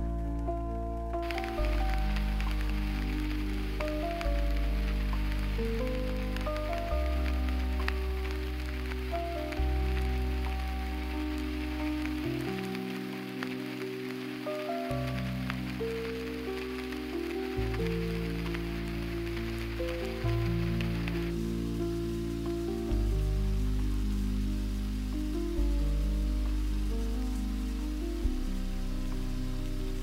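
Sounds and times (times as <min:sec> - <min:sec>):
light rain: 0:00.0 - 0:30.0.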